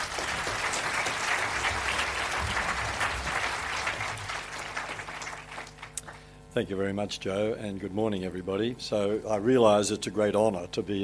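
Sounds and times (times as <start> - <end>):
audience applause welcoming a guest speaker at a talk: 0.0 - 6.3
speech: 6.6 - 11.0.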